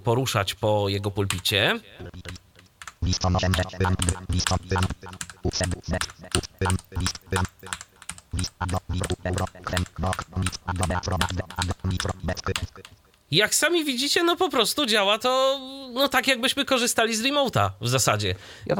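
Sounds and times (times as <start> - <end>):
speech: 0.0 - 2.4, 3.1 - 18.7
low steady hum: 1.1 - 13.3
typing on a computer keyboard: 1.3 - 13.2.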